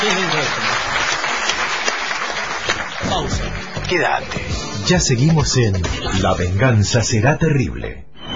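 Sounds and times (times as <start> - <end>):
applause for a guitarist: 0.0 - 4.4
speech: 3.9 - 8.1.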